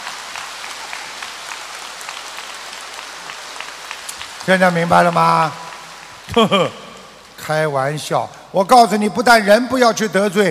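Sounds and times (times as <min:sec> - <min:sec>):
audience applause: 0:00.0 - 0:07.5
speech: 0:04.4 - 0:05.6, 0:06.3 - 0:06.8, 0:07.4 - 0:10.4.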